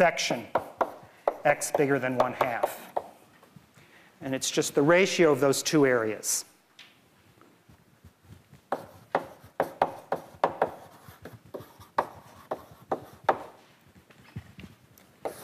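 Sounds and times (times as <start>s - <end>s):
speech: 0.0s - 0.6s, 1.4s - 2.9s, 4.2s - 6.5s
lecturer writing an integral on a board: 0.3s - 3.1s, 8.6s - 13.6s, 15.2s - 15.4s.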